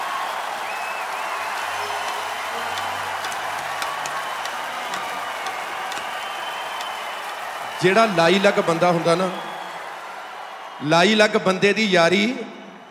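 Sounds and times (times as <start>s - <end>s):
loud applause from an audience: 0.0s - 12.8s
speech: 7.8s - 9.5s, 10.8s - 12.6s.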